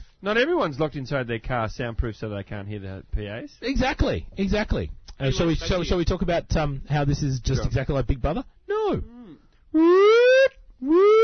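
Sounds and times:
speech: 0:00.2 - 0:11.2
person imitating a siren: 0:08.8 - 0:11.2.

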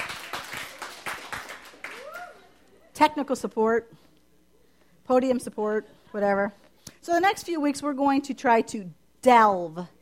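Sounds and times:
audience clapping: 0:00.0 - 0:02.4
speech: 0:03.0 - 0:04.1, 0:05.1 - 0:10.0.

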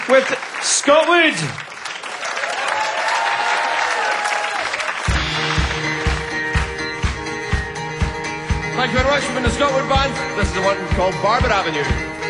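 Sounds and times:
audience applause: 0:00.0 - 0:07.4
speech: 0:00.1 - 0:01.7, 0:08.8 - 0:12.1.

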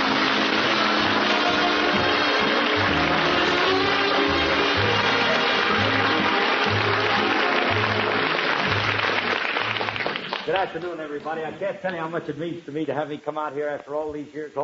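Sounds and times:
crowd applauding: 0:00.0 - 0:11.6
speech: 0:10.5 - 0:14.6.

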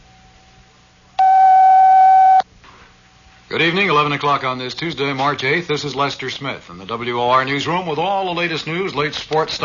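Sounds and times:
WOR radio station time signal beep: 0:01.2 - 0:02.4
speech: 0:03.5 - 0:09.6.

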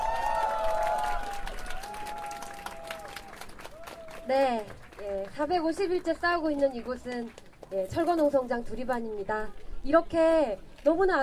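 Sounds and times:
audience applause: 0:00.0 - 0:05.3
speech: 0:04.3 - 0:11.2.

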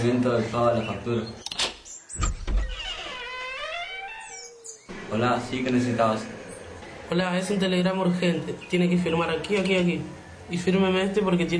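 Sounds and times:
speech: 0:00.0 - 0:01.5, 0:05.1 - 0:06.4, 0:07.1 - 0:11.5
front door creaking open: 0:01.4 - 0:04.9.

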